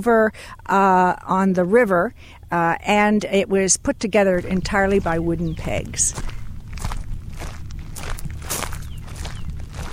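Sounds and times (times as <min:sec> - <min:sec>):
speech: 0:00.0 - 0:06.4
footsteps walking through a cemetery: 0:04.4 - 0:09.9.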